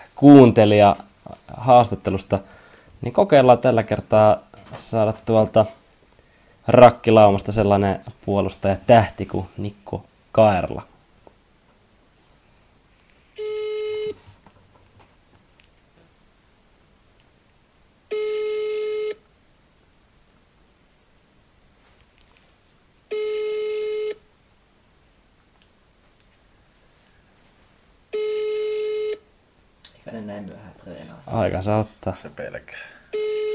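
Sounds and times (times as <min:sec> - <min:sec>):
speech: 0:00.2 - 0:05.8, 0:06.6 - 0:10.9, 0:31.4 - 0:33.0
buzzy telephone ringing tones: 0:13.4 - 0:14.2, 0:18.1 - 0:19.2, 0:23.1 - 0:24.2, 0:28.1 - 0:29.3, 0:33.1 - 0:33.5.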